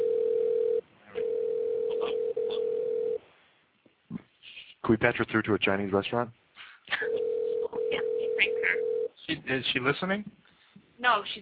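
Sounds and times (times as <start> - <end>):
telephone dial tone while calling: 0.0 - 3.2, 7.1 - 9.1
speech: 4.8 - 6.4, 9.5 - 10.4, 11.0 - 11.3.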